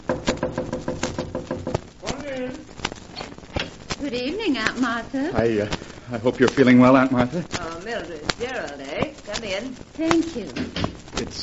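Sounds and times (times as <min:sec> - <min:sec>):
knocking on a door: 0:00.0 - 0:01.9
speech: 0:04.0 - 0:11.4.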